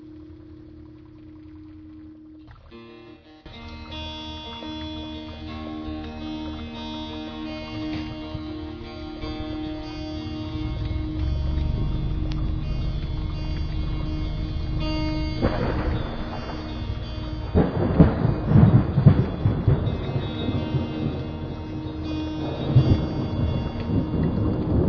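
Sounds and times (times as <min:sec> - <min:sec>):
Harley motorcycle engine rumbling: 0:07.7 - 0:24.8.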